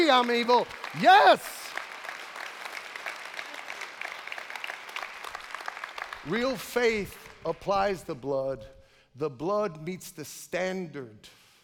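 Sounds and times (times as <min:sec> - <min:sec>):
speech: 0:00.0 - 0:01.6, 0:06.2 - 0:11.4
audience clapping: 0:00.0 - 0:08.1.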